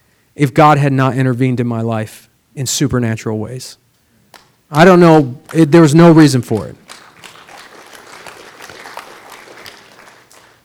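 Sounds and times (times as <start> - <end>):
speech: 0.4 - 3.8, 4.7 - 6.8
group applause: 5.4 - 10.6.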